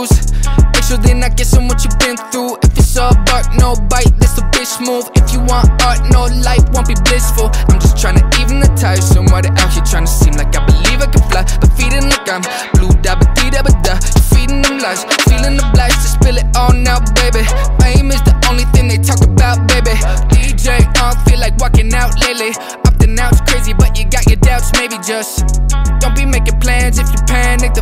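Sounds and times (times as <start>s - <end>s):
808 drum machine drums: 0.1s - 24.9s, 25.4s - 27.7s.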